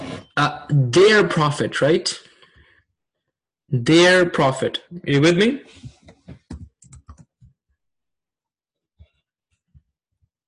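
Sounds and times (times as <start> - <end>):
speech: 0.4 - 2.3, 3.7 - 5.9
computer keyboard typing: 6.4 - 7.6.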